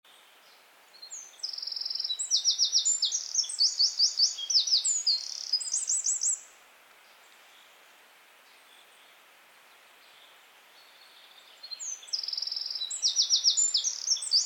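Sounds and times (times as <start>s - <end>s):
Eurasian wren Troglodytes troglodytes song: 0.1s - 7.8s, 8.4s - 14.4s.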